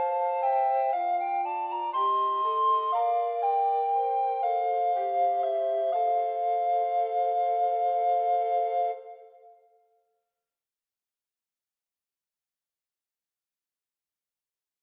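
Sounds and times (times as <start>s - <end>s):
recorder playing in Palestine: 0.0s - 9.6s.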